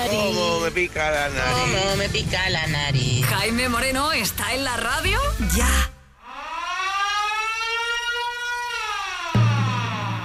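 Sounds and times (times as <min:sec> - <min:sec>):
speech: 0:00.0 - 0:06.0
wailing alarm siren sound effect: 0:06.2 - 0:10.2.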